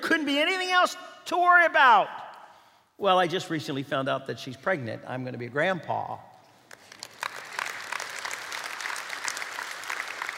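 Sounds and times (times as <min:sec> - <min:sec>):
speech: 0:00.1 - 0:02.2, 0:03.0 - 0:06.3
audience applause: 0:06.7 - 0:10.3.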